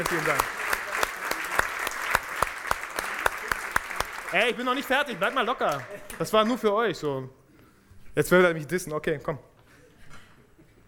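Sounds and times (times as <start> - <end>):
speech: 0.0 - 0.6, 4.3 - 7.4, 8.2 - 9.5
audience applause: 0.0 - 6.7.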